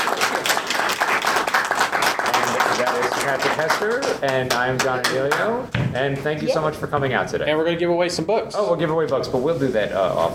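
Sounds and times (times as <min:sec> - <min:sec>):
audience applause: 0:00.0 - 0:05.4
speech: 0:03.2 - 0:10.3.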